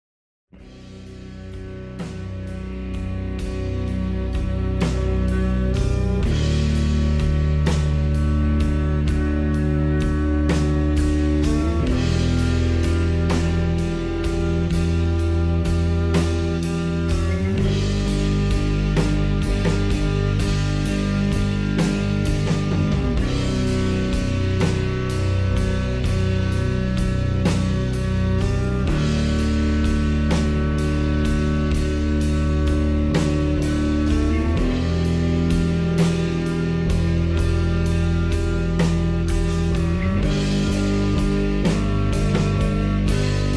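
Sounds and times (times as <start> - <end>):
slowed reverb music: 0.6 - 43.5.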